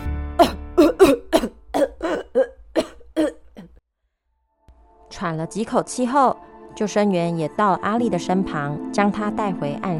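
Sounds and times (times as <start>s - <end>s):
girl coughing hoarsely after nearly drowning: 0.4s - 3.8s
speech: 5.2s - 9.9s.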